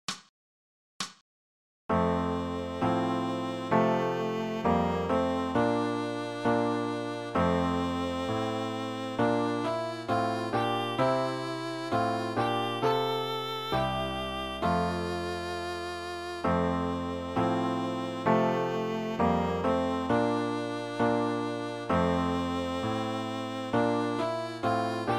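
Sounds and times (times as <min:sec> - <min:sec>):
viola playing a gavotte: 0:02.3 - 0:25.1.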